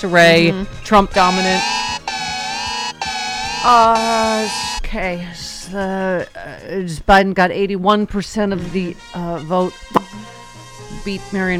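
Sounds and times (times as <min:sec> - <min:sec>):
speech: 0:00.0 - 0:01.8, 0:03.6 - 0:10.2, 0:11.0 - 0:11.5
air raid siren: 0:01.2 - 0:04.8.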